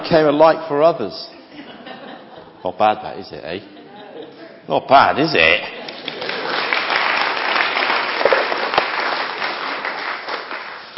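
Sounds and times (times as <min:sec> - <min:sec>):
speech: 0:00.1 - 0:01.4, 0:02.6 - 0:03.8, 0:04.7 - 0:05.8
laughter: 0:01.3 - 0:02.8, 0:03.5 - 0:04.7
audience clapping: 0:05.7 - 0:10.9.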